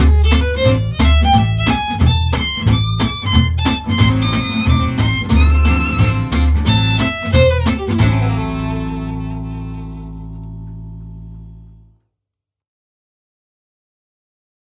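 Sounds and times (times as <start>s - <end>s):
swing music: 0.0s - 11.3s.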